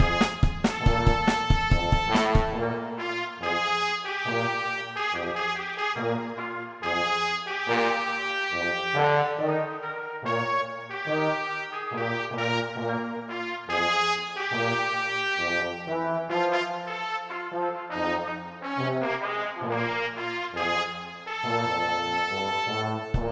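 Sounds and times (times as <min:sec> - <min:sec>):
drums: 0:00.0 - 0:02.7, 0:23.1 - 0:23.3
trumpet: 0:00.0 - 0:23.3
tuba: 0:00.0 - 0:23.3.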